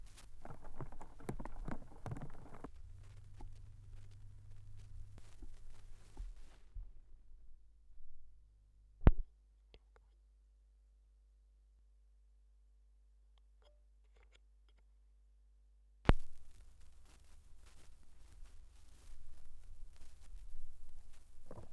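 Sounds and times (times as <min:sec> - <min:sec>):
record noise: 0:00.0 - 0:08.1, 0:16.1 - 0:21.7.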